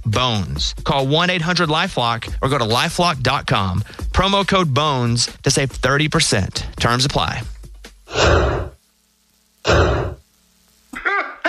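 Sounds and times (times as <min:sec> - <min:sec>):
speech: 0:00.2 - 0:08.5
sneezes: 0:08.1 - 0:08.8, 0:09.7 - 0:10.2.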